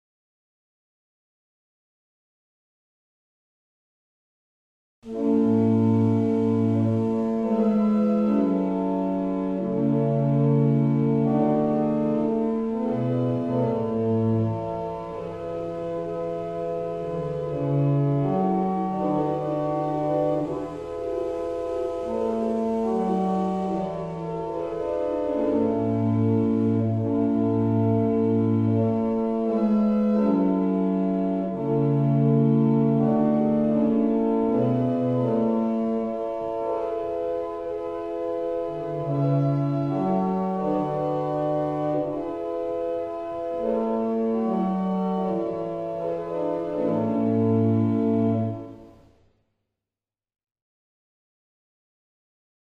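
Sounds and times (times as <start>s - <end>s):
barrel organ playing a double chant: 5.1s - 48.9s.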